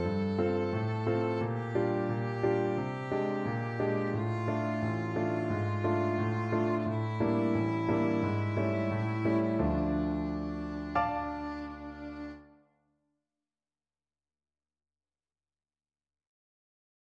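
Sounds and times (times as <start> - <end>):
fiddle playing a D melodic minor scale: 0.0 - 12.6.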